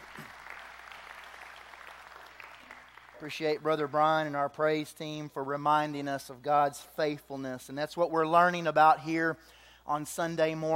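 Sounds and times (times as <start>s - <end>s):
audience hand clapping: 0.0s - 4.3s
speech: 3.2s - 10.7s.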